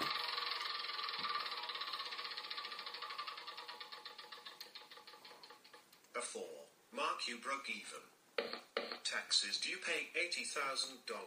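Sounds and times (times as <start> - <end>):
board game spinner ratcheting clicks: 0.0 - 6.1
speech: 6.3 - 11.2.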